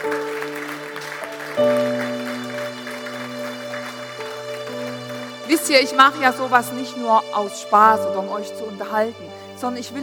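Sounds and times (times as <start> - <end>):
audience applause: 0.0 - 6.8
speech: 5.6 - 10.0.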